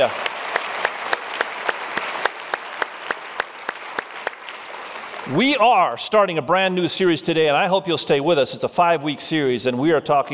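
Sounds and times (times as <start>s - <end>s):
speech: 0.0s - 0.2s, 5.3s - 10.3s
audience applause: 0.0s - 5.5s.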